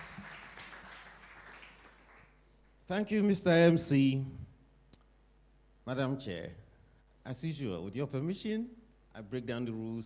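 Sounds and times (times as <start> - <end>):
audience applause at a debate event: 0.0 - 2.4
speech: 2.9 - 4.4, 5.9 - 6.6, 7.2 - 10.0.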